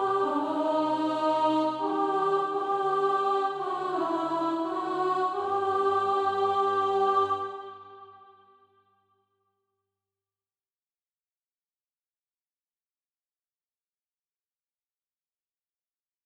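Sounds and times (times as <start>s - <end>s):
soprano singing practice music: 0.0s - 8.3s.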